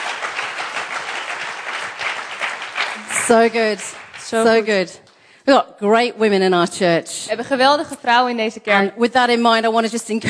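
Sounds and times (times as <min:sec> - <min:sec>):
church congregation applauding: 0:00.0 - 0:04.9
speech: 0:03.3 - 0:10.2.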